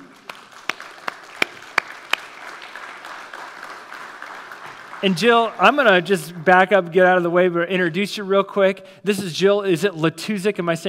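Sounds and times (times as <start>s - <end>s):
audience applauding: 0.0s - 6.2s
speech: 5.0s - 10.8s.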